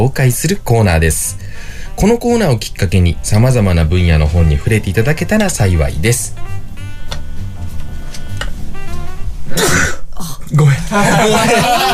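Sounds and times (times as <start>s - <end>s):
speech: 0.0s - 6.6s, 9.5s - 11.9s
sneeze: 9.5s - 10.1s
laughter: 10.8s - 11.9s.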